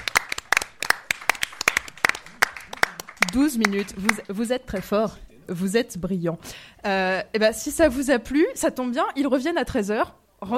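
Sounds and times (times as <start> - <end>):
small audience clapping: 0.0 - 5.0
speech: 3.3 - 10.5.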